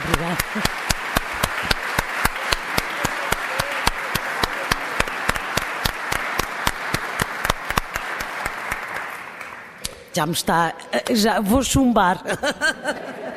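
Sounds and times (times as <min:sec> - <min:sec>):
laughter: 0:00.0 - 0:01.0, 0:12.1 - 0:13.3
audience applause: 0:00.0 - 0:09.8
rhythmic sharp claps: 0:00.0 - 0:10.2
speech: 0:00.3 - 0:00.8, 0:10.1 - 0:13.1.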